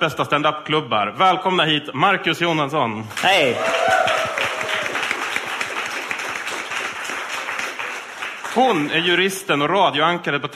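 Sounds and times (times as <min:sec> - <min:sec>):
speech: 0:00.0 - 0:04.2, 0:08.6 - 0:10.5
audience applause: 0:03.3 - 0:09.2.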